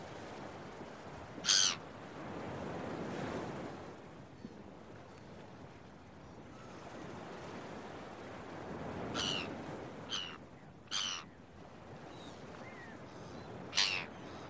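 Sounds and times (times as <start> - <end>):
gentle waves: 0.0 - 14.4
gull cries: 1.4 - 1.8, 9.2 - 9.5, 10.1 - 11.3, 13.7 - 14.4.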